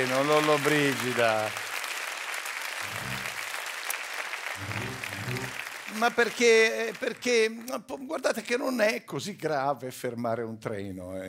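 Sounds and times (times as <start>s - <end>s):
speech: 0.0s - 1.7s, 4.6s - 11.2s
audience applause: 0.0s - 7.7s.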